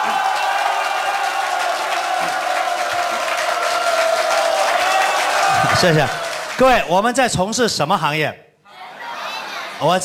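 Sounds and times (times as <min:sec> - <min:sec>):
cheering and whoops: 0:00.0 - 0:06.5
audience applause: 0:00.0 - 0:06.9
speech: 0:05.8 - 0:08.4, 0:09.8 - 0:10.0.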